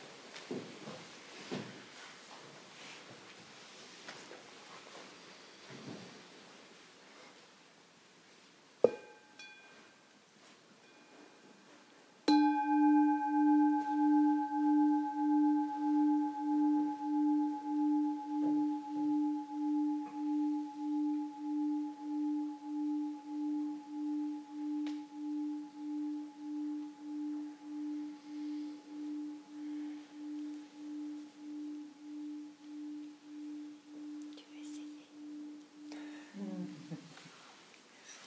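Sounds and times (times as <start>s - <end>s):
small bell being rung: 12.3s - 36.4s.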